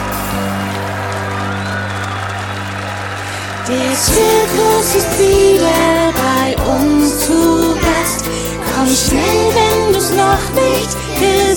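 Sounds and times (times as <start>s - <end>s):
audience applause: 0.0s - 6.9s
speech: 3.7s - 7.6s, 8.8s - 11.5s.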